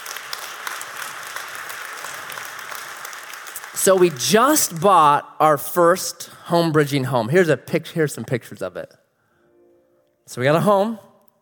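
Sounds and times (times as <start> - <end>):
audience applause: 0.0 - 4.9
speech: 3.8 - 9.0, 10.3 - 11.1.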